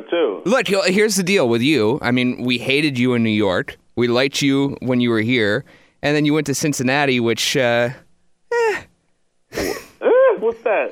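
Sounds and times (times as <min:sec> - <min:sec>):
speech: 0:00.1 - 0:08.0, 0:10.7 - 0:10.9
man clearing his throat: 0:09.6 - 0:10.0.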